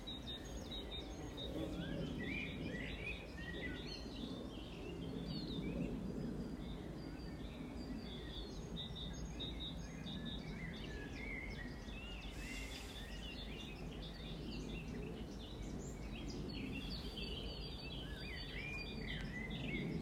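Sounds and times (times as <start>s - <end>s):
birds chirping: 0.0s - 20.0s.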